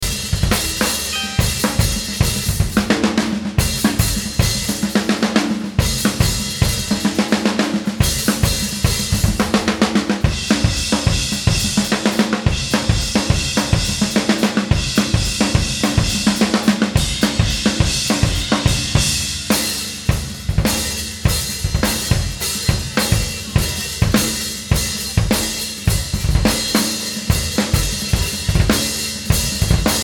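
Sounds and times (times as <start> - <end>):
drums: 0.0 - 30.0.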